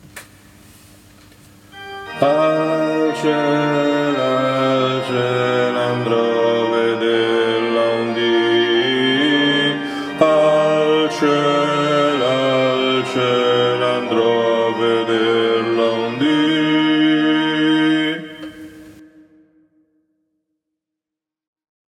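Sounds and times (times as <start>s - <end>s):
bass section of a choir singing: 2.1s - 19.0s.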